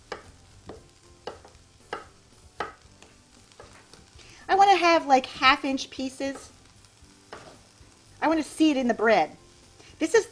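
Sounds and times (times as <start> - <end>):
knife chopping steamed potato on a board: 0.1 - 2.8
speech: 4.5 - 6.6, 8.2 - 9.4, 10.0 - 10.3.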